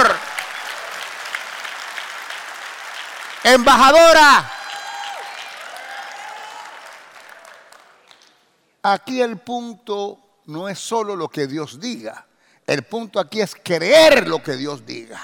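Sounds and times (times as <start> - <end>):
audience applause: 0.0 - 8.3
speech: 3.5 - 4.6, 8.8 - 15.2.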